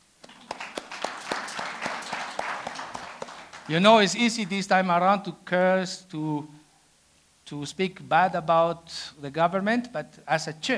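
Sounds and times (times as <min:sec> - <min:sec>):
audience clapping: 0:00.0 - 0:04.7
speech: 0:03.7 - 0:06.6, 0:07.5 - 0:10.7.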